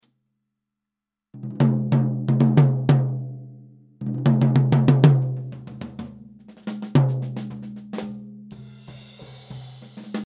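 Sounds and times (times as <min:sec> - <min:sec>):
tom drum: 0:01.4 - 0:03.3, 0:04.0 - 0:10.2.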